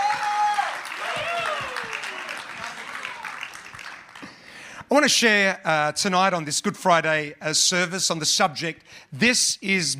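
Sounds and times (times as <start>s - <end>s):
whistles and whoops: 0.0s - 2.4s
audience applause: 0.0s - 4.6s
speech: 4.9s - 9.9s.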